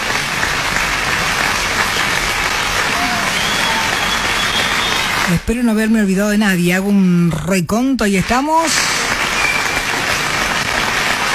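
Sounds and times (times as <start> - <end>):
audience applause: 0.0 - 5.4, 8.3 - 11.3
speech: 5.3 - 9.0.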